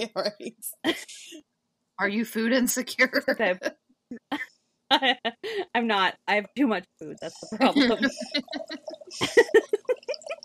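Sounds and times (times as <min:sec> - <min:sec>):
laughter: 0:00.0 - 0:01.2, 0:07.3 - 0:10.4
speech: 0:00.0 - 0:10.0
wine being poured: 0:07.3 - 0:10.4.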